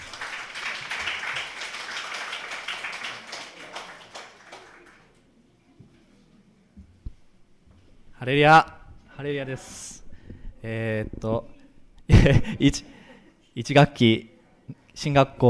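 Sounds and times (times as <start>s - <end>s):
audience applause welcoming a speaker: 0.0s - 5.2s
speech: 8.2s - 9.8s, 10.6s - 11.5s, 12.2s - 13.0s, 13.6s - 14.3s, 15.0s - 15.4s
laughter: 12.1s - 12.9s.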